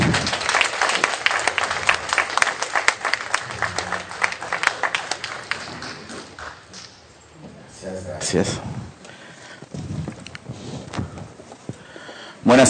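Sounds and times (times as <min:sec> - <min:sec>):
applause: 0:00.0 - 0:06.8
speech: 0:08.3 - 0:08.7.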